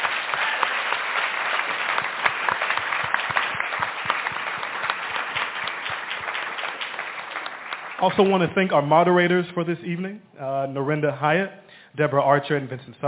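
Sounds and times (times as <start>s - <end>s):
audience applause: 0.0s - 8.7s
speech: 8.0s - 13.0s.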